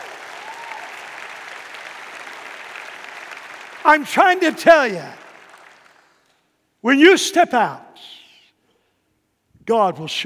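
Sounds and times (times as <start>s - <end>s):
audience clapping: 0.0s - 6.5s
speech: 3.8s - 5.2s, 6.8s - 8.2s, 9.6s - 10.2s.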